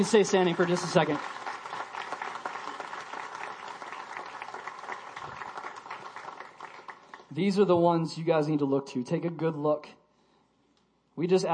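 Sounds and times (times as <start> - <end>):
speech: 0.0 - 1.4, 7.4 - 10.0, 11.2 - 11.5
audience clapping: 0.0 - 7.8.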